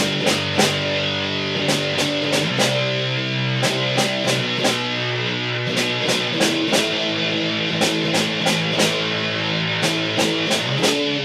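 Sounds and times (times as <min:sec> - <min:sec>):
snare drum on G: 0:00.0 - 0:01.0, 0:01.6 - 0:03.0, 0:03.6 - 0:05.0, 0:05.7 - 0:09.2, 0:09.8 - 0:11.1.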